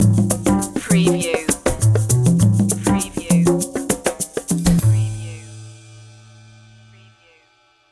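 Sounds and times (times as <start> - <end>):
jazzy opener music: 0.0 - 5.6.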